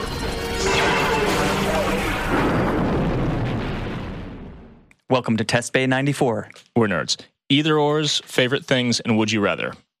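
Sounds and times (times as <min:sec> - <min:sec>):
explosion sound effect for a weapons test firing: 0:00.0 - 0:04.9
speech: 0:05.1 - 0:09.8.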